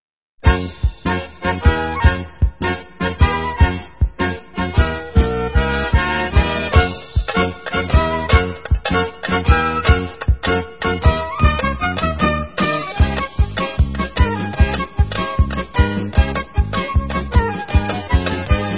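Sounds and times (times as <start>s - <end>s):
instrumental hora music for Israeli dances: 0.4s - 18.7s.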